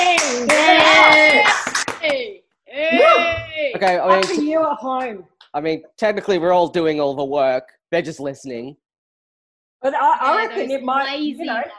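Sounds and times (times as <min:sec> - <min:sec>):
hands clapping, round of applause: 0:00.0 - 0:02.3, 0:03.0 - 0:04.6
speech: 0:03.8 - 0:08.8, 0:09.8 - 0:11.7.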